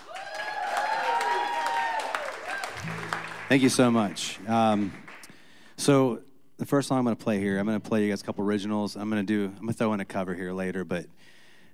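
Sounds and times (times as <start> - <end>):
audience applause welcoming a singer-songwriter: 0.0 - 5.7
speech: 3.5 - 5.0, 5.8 - 11.4.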